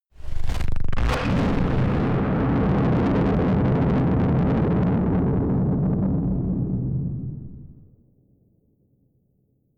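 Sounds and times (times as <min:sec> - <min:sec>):
distorted explosions: 0:00.2 - 0:07.8.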